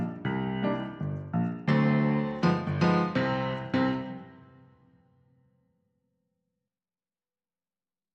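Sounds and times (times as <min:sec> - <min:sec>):
piano: 0:00.0 - 0:05.8.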